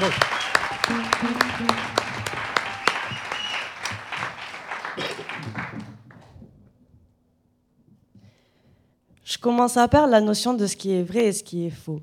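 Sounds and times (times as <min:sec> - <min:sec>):
speech: 0:00.0 - 0:00.3, 0:00.9 - 0:02.0, 0:09.4 - 0:12.0
audience applause: 0:00.0 - 0:06.3.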